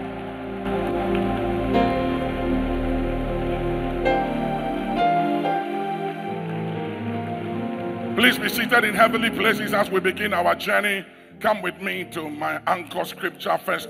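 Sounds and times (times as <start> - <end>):
audience clapping: 0.0 - 10.0
sustained musical chords: 0.0 - 13.0
speech: 8.2 - 13.8.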